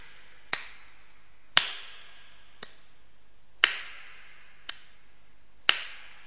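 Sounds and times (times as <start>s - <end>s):
rhythmic hand clapping: 0.0s - 2.9s, 3.6s - 5.0s, 5.6s - 6.2s.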